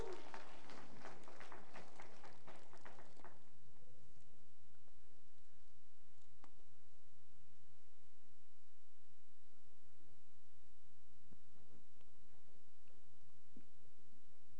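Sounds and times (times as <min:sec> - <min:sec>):
audience applause: 0:00.0 - 0:03.4.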